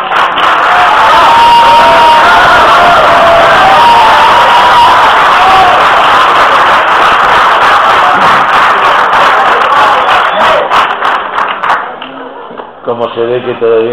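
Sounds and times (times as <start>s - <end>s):
loud sustained crowd applause welcoming a lecturer at a conference: 0.0s - 12.8s
cheering and whoops: 0.3s - 6.9s, 7.5s - 10.8s
speech: 13.2s - 13.9s.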